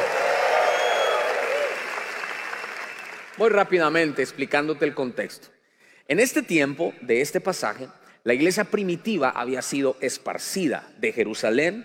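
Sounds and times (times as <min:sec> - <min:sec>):
audience applauding and cheering: 0:00.0 - 0:03.7
speech: 0:03.4 - 0:11.8.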